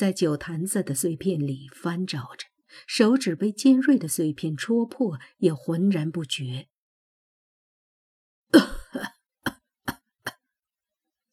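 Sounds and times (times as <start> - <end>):
speech: 0.0 - 6.7, 8.5 - 9.2
cough: 8.6 - 9.6.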